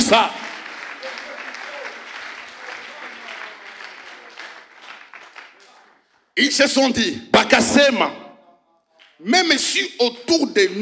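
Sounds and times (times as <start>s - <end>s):
church congregation applauding loudly during worship: 0.0s - 6.4s
speech: 0.1s - 0.4s, 6.4s - 8.2s, 9.2s - 10.8s.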